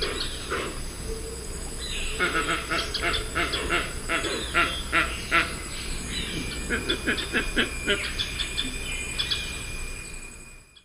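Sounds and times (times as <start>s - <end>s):
Opisthocomus hoazin calls in the Eastern Lowlands of South America: 0.0s - 9.8s.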